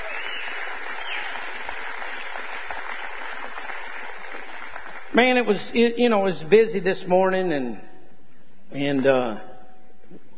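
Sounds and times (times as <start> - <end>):
audience clapping hands: 0.0 - 5.4
speech: 5.1 - 7.9, 8.7 - 9.5.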